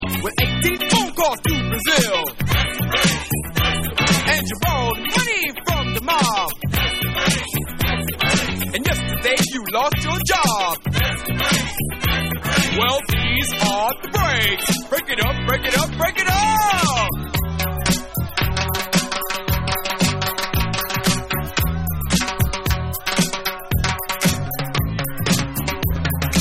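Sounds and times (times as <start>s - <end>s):
vocals: 0.0s - 26.3s.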